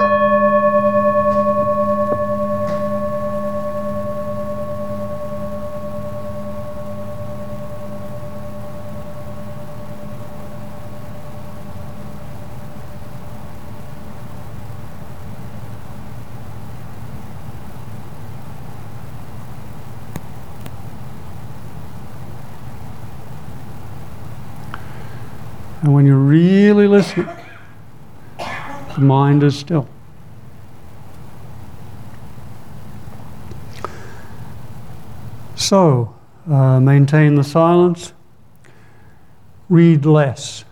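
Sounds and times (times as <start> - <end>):
meditation bell ringing: 0.0 - 15.6
speech: 25.9 - 27.4, 29.0 - 29.9, 35.7 - 38.2, 39.7 - 40.7.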